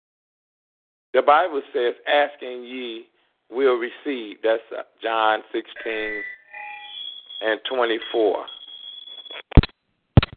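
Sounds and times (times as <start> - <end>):
speech: 1.2 - 6.4, 7.4 - 8.6
phone alert going off in the room: 5.8 - 9.6.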